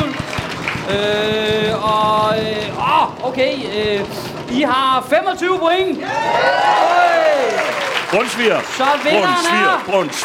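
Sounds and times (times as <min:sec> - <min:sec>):
drum roll sound effect: 0:00.0 - 0:10.2
speech: 0:00.9 - 0:06.9, 0:08.1 - 0:10.2.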